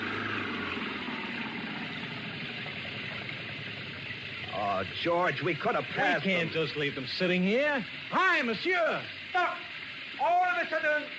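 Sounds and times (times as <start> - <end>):
car engine roaring stuck in mud: 0.0 - 6.8
speech: 4.6 - 9.6, 10.2 - 11.1.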